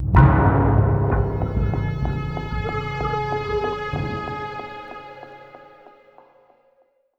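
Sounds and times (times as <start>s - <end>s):
musical stinger: 0.0s - 6.0s.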